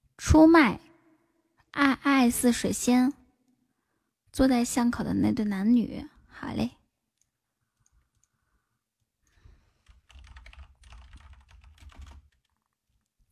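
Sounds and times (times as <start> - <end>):
speech: 0.3 - 0.8, 1.7 - 3.2, 4.4 - 6.8
fast typing on a computer keyboard: 9.8 - 13.2.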